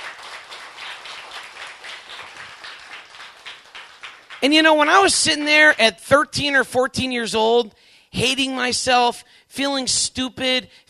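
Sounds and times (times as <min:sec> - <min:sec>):
rhythmic clapping: 0:00.0 - 0:05.9
speech: 0:04.4 - 0:10.8.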